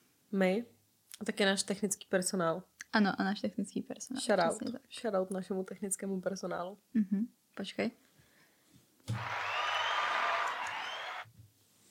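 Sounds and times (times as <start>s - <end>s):
speech: 0.3s - 8.1s
applause: 9.1s - 11.3s.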